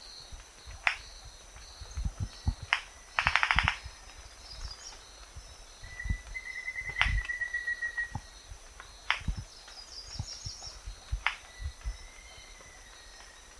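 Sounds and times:
Rufous-vented ground cuckoo bill clapping: 0:02.4 - 0:03.9, 0:06.0 - 0:12.0.

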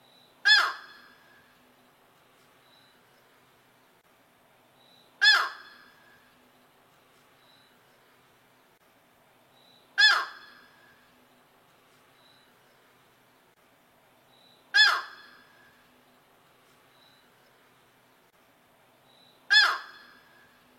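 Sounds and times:
yellow-crowned night heron giving harsh squawks: 0:05.2 - 0:05.6, 0:10.0 - 0:10.4, 0:14.8 - 0:15.3, 0:19.5 - 0:20.1.

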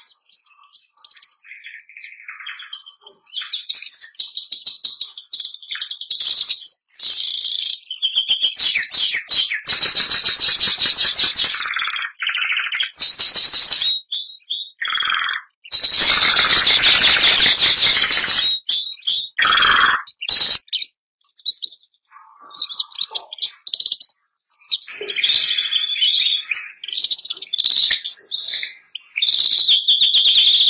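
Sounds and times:
canary song: 0:07.4 - 0:30.6.

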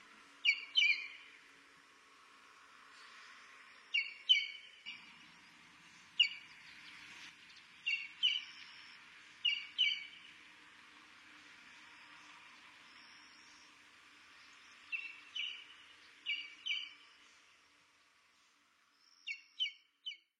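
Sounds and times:
brown-crested bustard singing: 0:00.4 - 0:01.4, 0:03.8 - 0:10.4, 0:12.0 - 0:17.4, 0:18.9 - 0:20.3.

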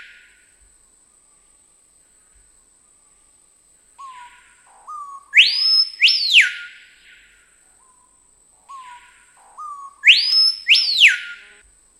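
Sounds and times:
screaming piha song of loud piercing whistles: 0:04.9 - 0:07.2, 0:09.6 - 0:11.6.

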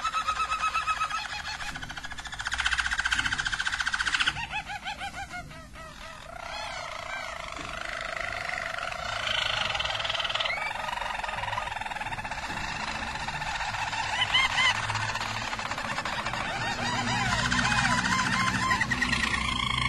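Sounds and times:
Belgian Harz Roller canary song with rolling tours and trills: 0:00.0 - 0:19.8.

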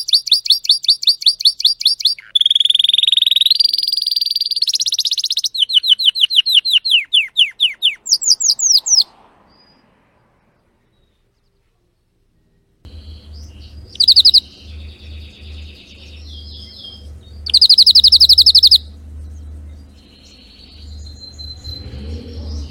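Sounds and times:
Spanish Timbrado canary singing: 0:00.0 - 0:09.8, 0:12.9 - 0:22.6
low rumble: 0:12.9 - 0:22.6.

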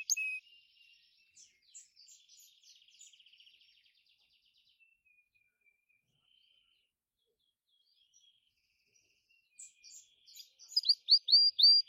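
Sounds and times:
Gloster canary singing: 0:00.0 - 0:00.4, 0:09.9 - 0:11.8.

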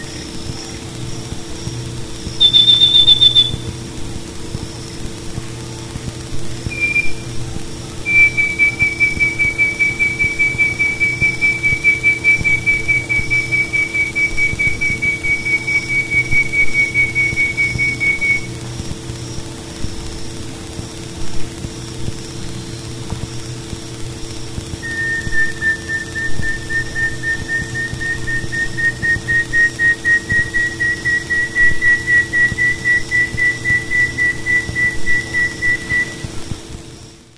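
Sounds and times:
uirapuru-veado wren singing: 0:01.6 - 0:03.8, 0:06.7 - 0:07.4, 0:08.0 - 0:18.5, 0:24.8 - 0:36.2.

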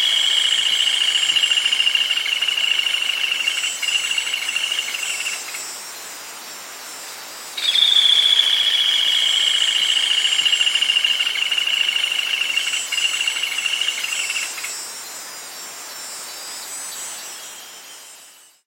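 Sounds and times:
sana castanha bird singing: 0:00.0 - 0:05.7, 0:07.6 - 0:14.7.

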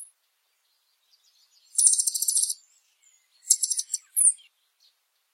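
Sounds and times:
Blue dacnis singing: 0:01.8 - 0:02.6, 0:03.5 - 0:04.4.

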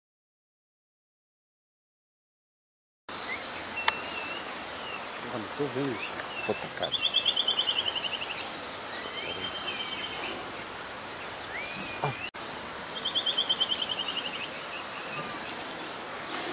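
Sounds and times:
rufous-winged antwren song trill: 0:03.2 - 0:12.3, 0:12.9 - 0:16.4.

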